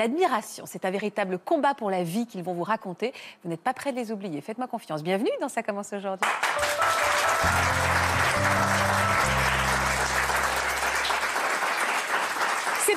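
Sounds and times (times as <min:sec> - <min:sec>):
speech: 0:00.0 - 0:07.9
audience applause: 0:06.2 - 0:12.9
low sustained musical chord: 0:06.7 - 0:11.3.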